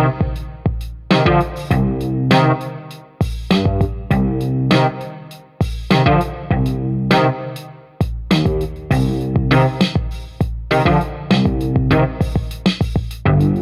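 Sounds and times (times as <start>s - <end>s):
distorted filtered drum loop with variations: 0.0s - 13.6s.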